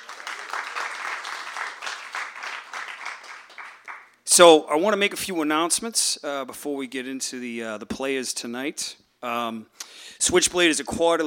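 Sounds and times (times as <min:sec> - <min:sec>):
audience applause welcoming readers at a literary magazine's reading evening: 0:00.0 - 0:04.2
speech: 0:04.4 - 0:11.2.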